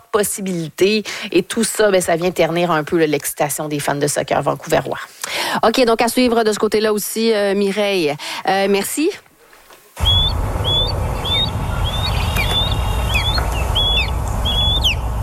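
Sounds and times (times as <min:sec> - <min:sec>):
speech: 0:00.1 - 0:09.3, 0:10.0 - 0:10.4
osprey cries: 0:10.0 - 0:15.1.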